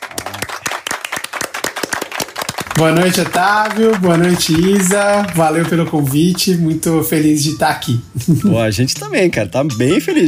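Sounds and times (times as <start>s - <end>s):
people clapping for a guest: 0.0s - 7.3s
speech: 2.8s - 10.2s.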